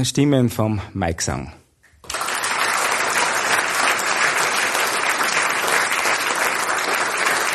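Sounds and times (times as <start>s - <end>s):
speech: 0.0s - 1.6s
audience applause: 2.0s - 7.5s.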